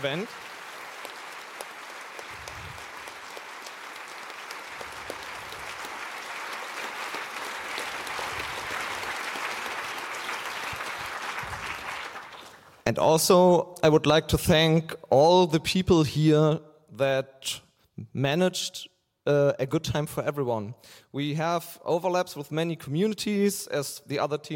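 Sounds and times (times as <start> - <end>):
speech: 0.0 - 0.5, 12.9 - 24.5
audience applause: 0.0 - 12.8.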